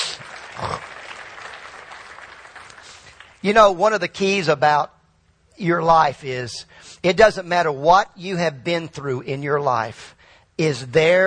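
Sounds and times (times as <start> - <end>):
crowd clapping: 0.0 - 3.8
speech: 3.4 - 5.0, 5.6 - 11.2.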